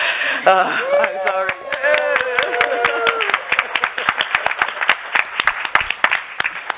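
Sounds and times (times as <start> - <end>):
speech: 0.4 - 1.5
audience applauding: 0.4 - 6.7
whoops and cheers: 0.5 - 3.8.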